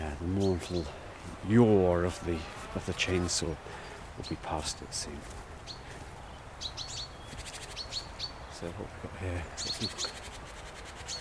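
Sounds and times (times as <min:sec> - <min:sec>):
blue tits and great tits calling: 0:00.0 - 0:11.2
speech: 0:00.3 - 0:05.8, 0:08.6 - 0:10.2.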